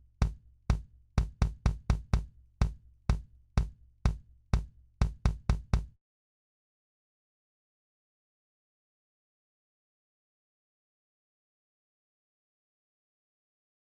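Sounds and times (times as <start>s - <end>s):
kick drum: 0.0s - 6.0s.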